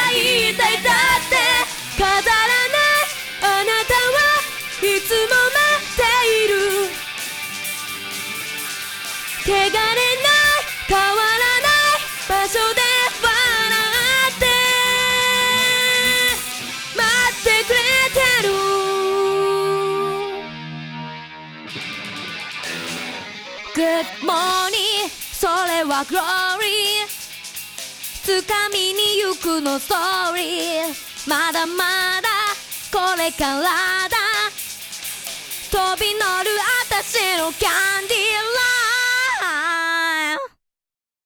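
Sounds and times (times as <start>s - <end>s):
a cappella singing: 0.0s - 7.2s, 9.4s - 20.5s, 23.8s - 27.1s, 28.2s - 34.5s, 35.7s - 40.4s.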